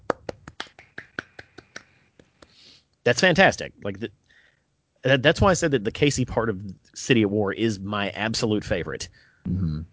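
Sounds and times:
golf clap: 0.0 - 2.5
speech: 3.0 - 4.2, 5.0 - 9.9.

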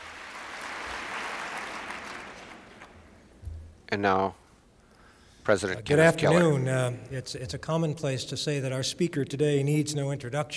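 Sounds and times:
audience applause: 0.0 - 3.0
speech: 3.9 - 4.4, 5.5 - 10.5.

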